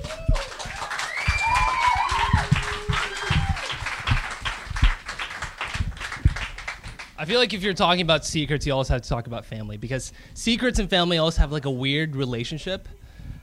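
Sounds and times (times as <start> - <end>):
audience applause: 0.0 - 7.2
speech: 7.3 - 13.0.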